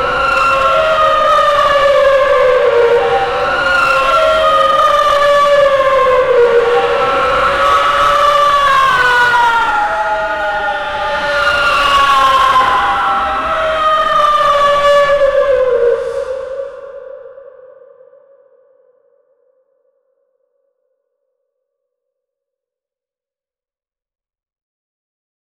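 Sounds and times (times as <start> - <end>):
horror movie sounds: 0.0 - 17.0.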